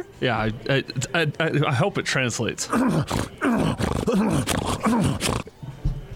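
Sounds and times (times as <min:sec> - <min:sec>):
speech: 0:00.0 - 0:05.6
wild hogs grunting: 0:02.6 - 0:05.6.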